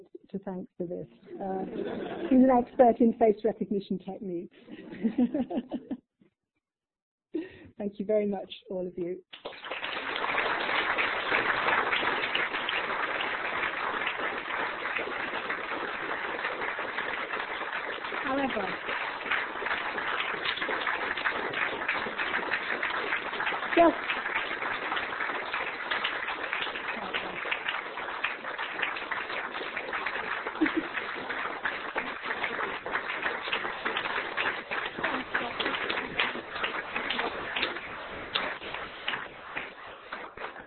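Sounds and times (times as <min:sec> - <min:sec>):
speech: 0:00.3 - 0:06.0, 0:07.3 - 0:09.7, 0:18.3 - 0:18.8, 0:23.8 - 0:24.1
laughter: 0:01.4 - 0:02.5, 0:04.7 - 0:06.0, 0:30.4 - 0:31.3
audience applause: 0:09.3 - 0:40.6.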